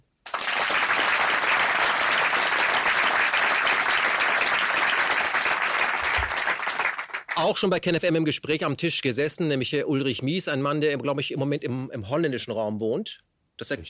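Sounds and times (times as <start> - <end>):
audience applause: 0.2 - 7.4
speech: 7.4 - 13.8.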